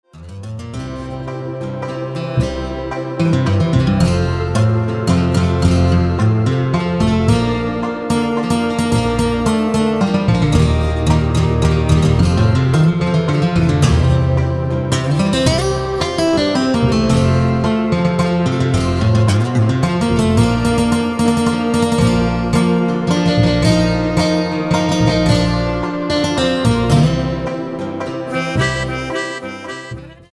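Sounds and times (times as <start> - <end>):
waltz music: 0.7 - 30.3.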